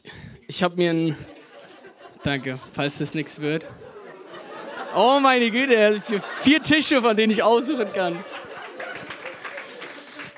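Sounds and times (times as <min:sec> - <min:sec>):
speech: 0:00.5 - 0:01.3, 0:02.2 - 0:03.8, 0:04.9 - 0:08.3
laughter: 0:01.0 - 0:10.3
murmur of crowd voices: 0:03.5 - 0:10.3
audience applause: 0:07.2 - 0:10.3.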